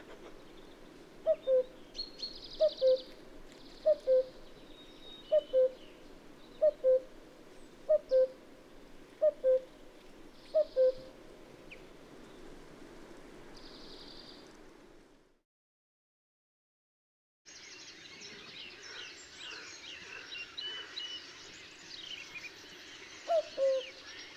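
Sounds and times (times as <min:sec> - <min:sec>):
cuckoo calling: 0:01.2 - 0:03.2, 0:03.8 - 0:04.4, 0:05.2 - 0:05.9, 0:06.6 - 0:07.1, 0:07.9 - 0:08.4, 0:09.2 - 0:09.7, 0:10.5 - 0:11.1, 0:23.2 - 0:24.1.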